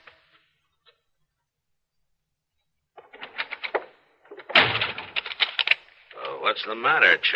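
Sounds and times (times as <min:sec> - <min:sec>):
door slamming hard: 0:03.0 - 0:05.7
speech: 0:06.6 - 0:07.3.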